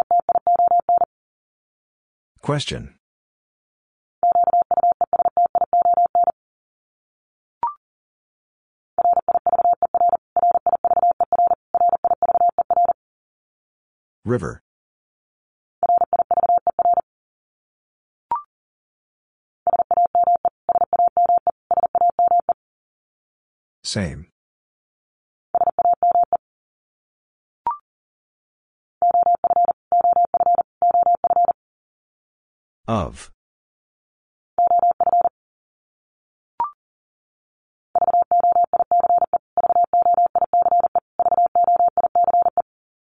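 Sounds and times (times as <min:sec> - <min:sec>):
Morse code tone beeps: 0:00.0 - 0:01.1, 0:04.2 - 0:06.4, 0:09.0 - 0:13.0, 0:15.8 - 0:17.0, 0:19.7 - 0:22.6, 0:25.6 - 0:26.4, 0:29.0 - 0:31.6, 0:34.6 - 0:35.3, 0:38.0 - 0:42.6
person speaking: 0:02.4 - 0:02.9, 0:23.9 - 0:24.2, 0:32.9 - 0:33.3.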